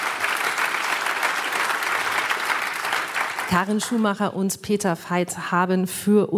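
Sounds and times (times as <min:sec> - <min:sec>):
audience applause: 0:00.0 - 0:04.2
speech: 0:03.5 - 0:06.3.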